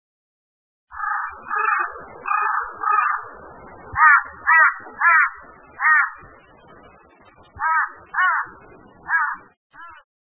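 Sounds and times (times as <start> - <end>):
Carrion crow cawing: 1.0 - 3.3, 4.0 - 6.2, 7.6 - 10.0.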